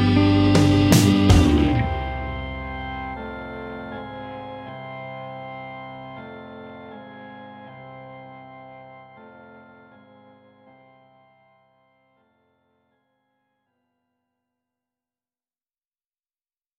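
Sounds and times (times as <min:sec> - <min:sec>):
instrumental rock music: 0:00.0 - 0:10.9.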